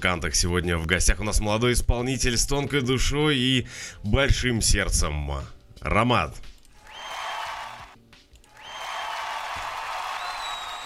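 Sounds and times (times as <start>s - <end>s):
speech: 0.0s - 6.5s
crowd applause: 6.9s - 7.9s, 8.5s - 10.8s.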